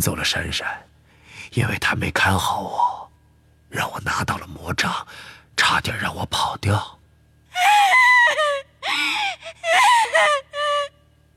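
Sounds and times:
speech: 0:00.0 - 0:00.9, 0:01.5 - 0:03.0, 0:03.7 - 0:07.0, 0:07.6 - 0:10.4
human voice letting out a desperate wavering wail: 0:07.6 - 0:11.0.

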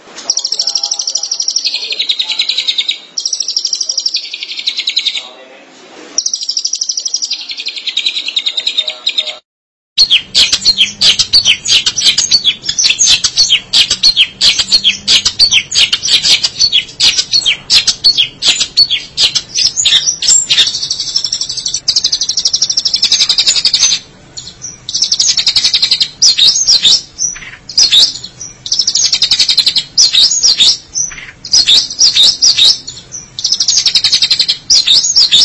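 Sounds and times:
long-tailed shrike singing: 0:00.2 - 0:05.4, 0:06.2 - 0:09.4, 0:10.0 - 0:35.4.

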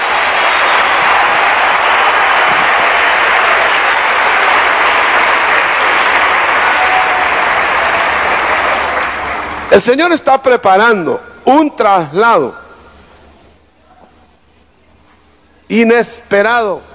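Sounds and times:
church congregation applauding: 0:00.0 - 0:09.8
speech: 0:09.8 - 0:12.6, 0:15.7 - 0:16.9.

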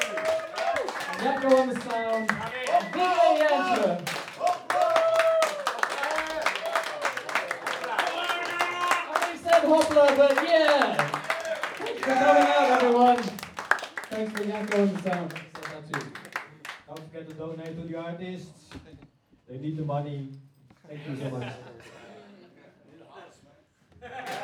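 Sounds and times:
people cheering and shouting: 0:00.0 - 0:01.8, 0:02.4 - 0:09.3, 0:11.3 - 0:13.1
audience clapping: 0:00.0 - 0:17.8
speech: 0:01.2 - 0:04.2, 0:09.7 - 0:11.2, 0:12.0 - 0:13.3, 0:14.1 - 0:16.2, 0:17.2 - 0:18.6, 0:19.5 - 0:21.7
laughter: 0:20.9 - 0:24.4.

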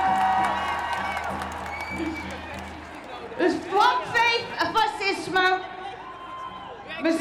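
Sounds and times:
people clapping at a feminist march rally in Amsterdam: 0:00.0 - 0:04.8
crowd cheering at a feminist march rally on Dam square in Amsterdam: 0:00.0 - 0:07.1.

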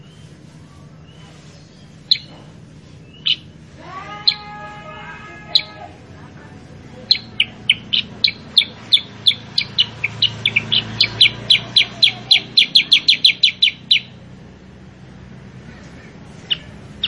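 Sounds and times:
Sooty-headed bulbul calls: 0:01.9 - 0:06.0, 0:07.0 - 0:14.2, 0:16.3 - 0:17.0.

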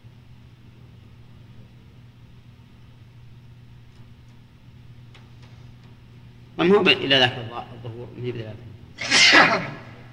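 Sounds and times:
speech: 0:06.6 - 0:09.8
sneeze: 0:09.0 - 0:10.1.

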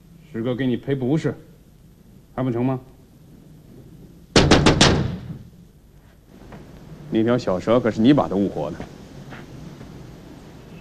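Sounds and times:
speech: 0:00.3 - 0:01.5, 0:02.4 - 0:02.9, 0:07.1 - 0:09.0
loud hollow knocking on a door: 0:04.4 - 0:05.3.

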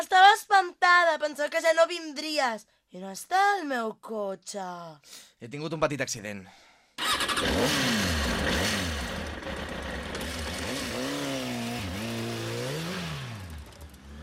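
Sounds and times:
speech: 0:00.1 - 0:08.8
motorcycle engine revving and riding off: 0:07.0 - 0:14.2.

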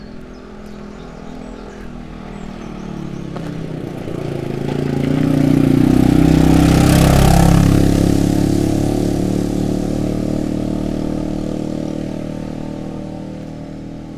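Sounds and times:
loud motorcycle engine roaring past: 0:00.0 - 0:14.1.

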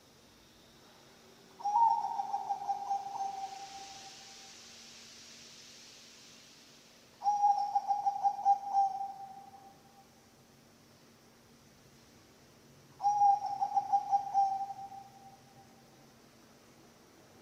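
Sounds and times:
background hiss: 0:00.0 - 0:17.4
zebra dove cooing: 0:01.6 - 0:03.8, 0:07.2 - 0:09.3, 0:13.0 - 0:15.2.

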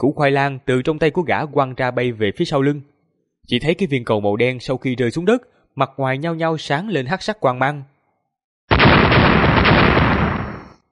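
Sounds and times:
speech: 0:00.0 - 0:07.9
series of deafening explosions: 0:08.7 - 0:10.8.

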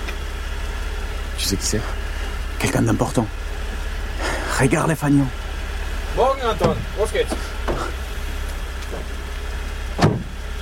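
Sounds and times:
car engine idling: 0:00.0 - 0:10.5
speech: 0:01.4 - 0:02.0, 0:02.6 - 0:03.4, 0:04.6 - 0:05.4, 0:06.2 - 0:08.0.

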